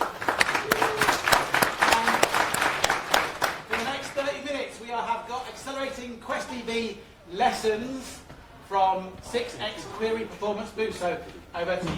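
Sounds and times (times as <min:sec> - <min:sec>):
audience round of applause: 0:00.0 - 0:04.2
speech: 0:06.0 - 0:11.9.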